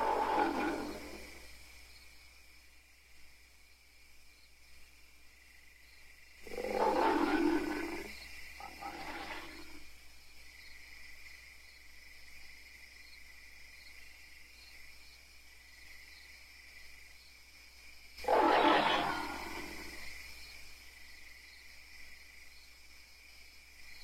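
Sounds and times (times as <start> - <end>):
apes screaming and barking: 6.5 - 9.7, 18.2 - 19.9.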